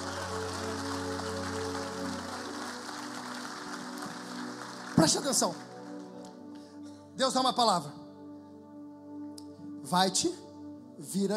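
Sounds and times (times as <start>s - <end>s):
audience applause: 0.0s - 6.4s
speech: 5.0s - 5.7s, 7.2s - 8.0s, 9.9s - 10.4s, 11.0s - 11.3s.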